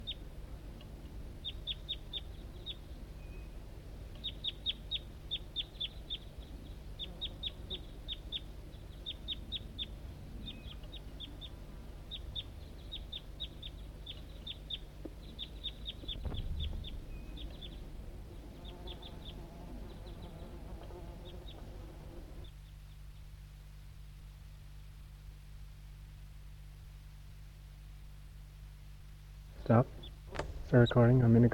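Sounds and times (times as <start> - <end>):
low steady hum: 0.0 - 31.5
wild bird calling back to decoy: 1.4 - 3.6, 4.2 - 23.4
speech: 29.7 - 30.0, 30.7 - 31.5.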